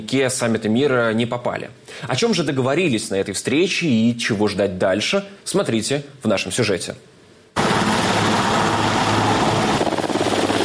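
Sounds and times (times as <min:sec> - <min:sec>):
speech: 0:00.0 - 0:07.2
helicopters flying in: 0:07.6 - 0:10.6.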